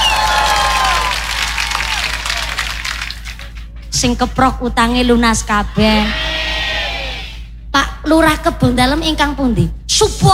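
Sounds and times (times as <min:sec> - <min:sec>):
crowd applause for farmers at a local gathering: 0:00.0 - 0:03.6
low steady hum: 0:00.0 - 0:10.3
speech: 0:04.0 - 0:06.2, 0:07.8 - 0:10.3.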